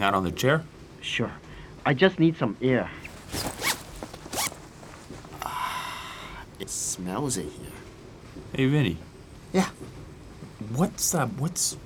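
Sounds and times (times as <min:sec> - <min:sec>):
speech: 0:00.0 - 0:03.5, 0:07.0 - 0:07.7, 0:08.5 - 0:10.0, 0:10.6 - 0:11.8
bag being unzipped: 0:03.0 - 0:05.6.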